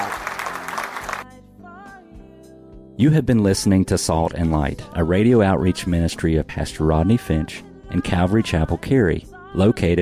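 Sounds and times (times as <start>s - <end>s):
audience clapping hands: 0.0s - 1.2s
speech: 3.0s - 9.9s.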